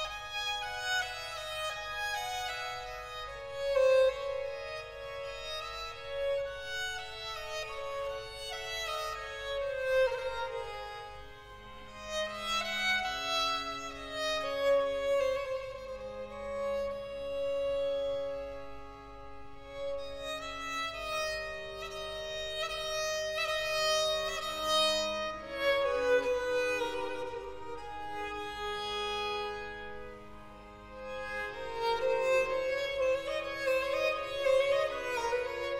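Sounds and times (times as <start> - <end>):
violin concerto for violin, strings and continuo in G minor: 0.0 - 35.7.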